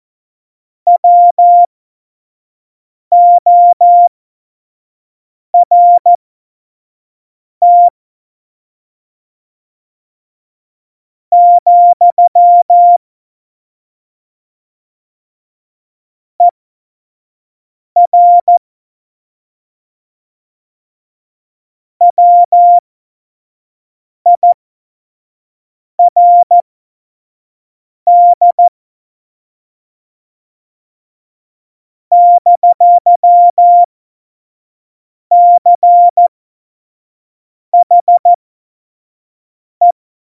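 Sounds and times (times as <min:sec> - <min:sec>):
CW Morse code beeps: 0:00.9 - 0:01.7, 0:03.1 - 0:04.1, 0:05.6 - 0:06.1, 0:07.6 - 0:07.9, 0:11.4 - 0:13.0, 0:18.0 - 0:18.6, 0:22.0 - 0:22.8, 0:24.4 - 0:24.6, 0:26.0 - 0:26.6, 0:28.1 - 0:28.7, 0:32.1 - 0:33.9, 0:35.3 - 0:36.3, 0:37.8 - 0:38.4.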